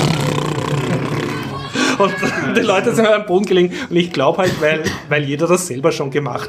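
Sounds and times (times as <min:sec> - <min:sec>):
voice imitating toy spaceship engine noise: 0:00.0 - 0:02.6
laughter: 0:00.6 - 0:03.2
speech: 0:02.0 - 0:06.4.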